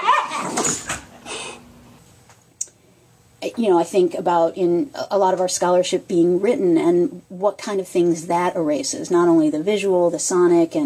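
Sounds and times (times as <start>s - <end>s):
dogs playing or fighting: 0.0s - 1.3s
speech: 0.6s - 0.9s, 3.5s - 10.8s.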